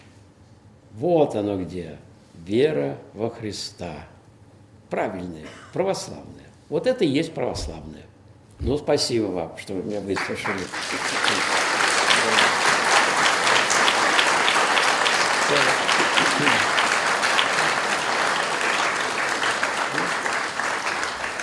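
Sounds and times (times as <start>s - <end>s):
speech: 1.0s - 4.2s, 4.9s - 11.6s
audience clapping: 10.0s - 21.4s.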